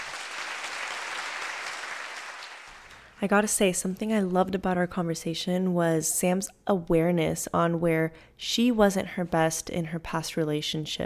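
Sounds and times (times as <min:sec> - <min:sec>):
group applauding: 0:00.0 - 0:03.2
speech: 0:03.2 - 0:11.0.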